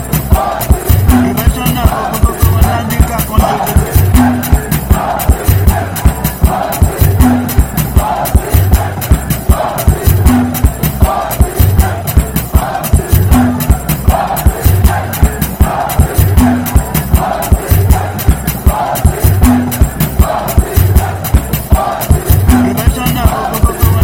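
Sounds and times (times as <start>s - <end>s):
professional victory music beat: 0.0s - 24.0s.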